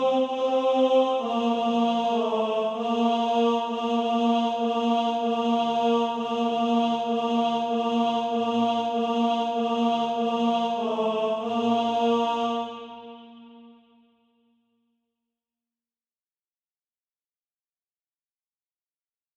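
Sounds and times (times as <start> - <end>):
tenor SATB practice part: 0.0 - 13.6.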